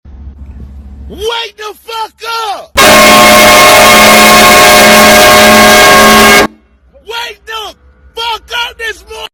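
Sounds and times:
semi truck horn: 2.8s - 6.8s.

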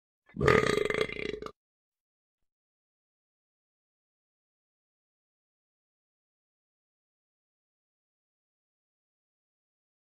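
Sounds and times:
person burping: 0.3s - 1.6s.

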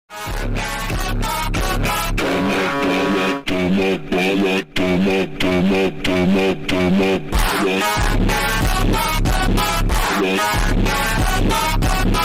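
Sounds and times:
viral phonk music: 0.1s - 12.2s.

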